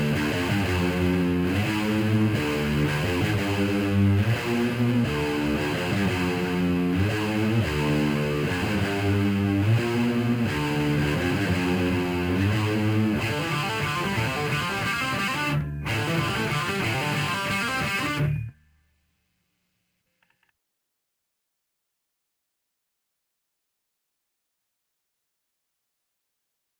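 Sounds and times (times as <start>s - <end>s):
guitar: 0.0s - 18.6s.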